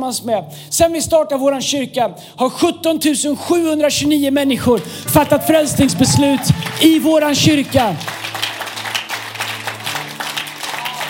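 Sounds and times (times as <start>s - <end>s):
speech: 0.0s - 8.2s
church audience applauding: 4.9s - 11.0s.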